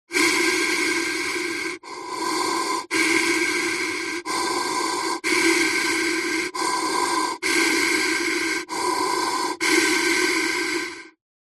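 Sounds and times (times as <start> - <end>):
steady deep human breathing in a firefighter mask: 0.1 - 11.2.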